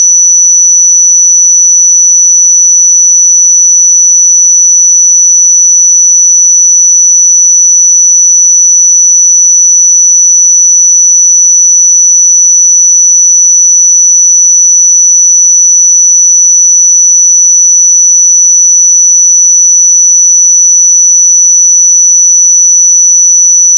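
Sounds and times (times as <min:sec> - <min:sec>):
pure 5937 Hz sine tone: 0:00.0 - 0:23.7.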